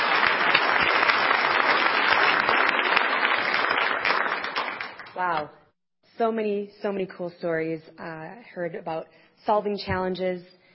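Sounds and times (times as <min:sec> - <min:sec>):
audience applause: 0:00.0 - 0:05.4
speech: 0:06.2 - 0:10.6.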